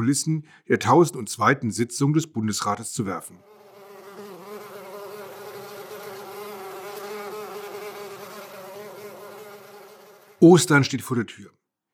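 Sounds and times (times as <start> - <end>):
speech: 0.0 - 3.6, 10.4 - 11.6
insects buzzing and humming: 3.5 - 10.4.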